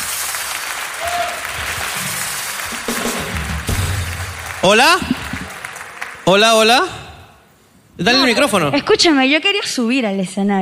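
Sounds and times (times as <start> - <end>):
audience applause: 0.0 - 7.2
speech: 4.6 - 5.2, 6.3 - 7.0, 8.0 - 10.5.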